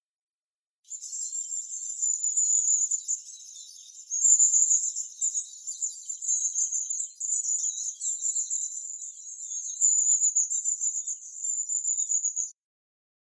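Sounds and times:
long-tailed tit Aegithalos caudatus: 0.9s - 12.5s.

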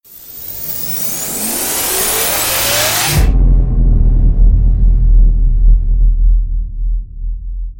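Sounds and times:
riser into impact hit: 1.5s - 7.0s.

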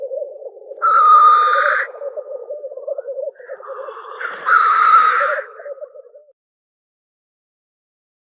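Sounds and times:
black grouse Tetrao tetrix calling: 0.0s - 6.3s.

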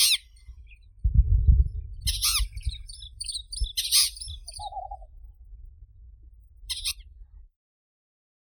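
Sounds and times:
bay-backed shrike Lanius vittatus calling: 0.0s - 0.8s, 2.1s - 5.1s, 6.7s - 7.0s.

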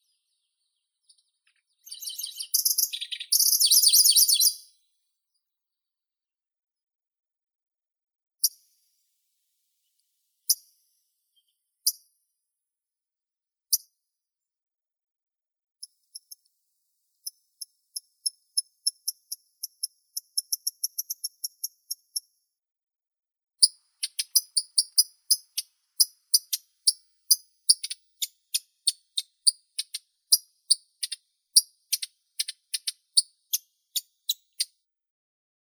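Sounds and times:
Locustella certhiola singing: 0.0s - 4.6s, 24.0s - 27.0s, 27.7s - 34.7s.

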